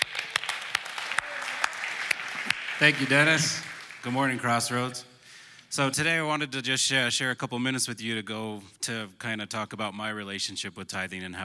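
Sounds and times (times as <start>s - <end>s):
church congregation applause welcoming a speaker: 0.0s - 4.9s
speech: 2.8s - 5.1s, 5.7s - 11.4s.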